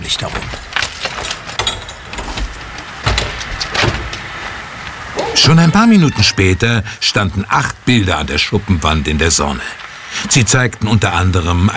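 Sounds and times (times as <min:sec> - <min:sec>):
speech: 0:00.1 - 0:00.7, 0:05.4 - 0:11.7
keys jangling unlocking a shed padlock: 0:00.2 - 0:04.2.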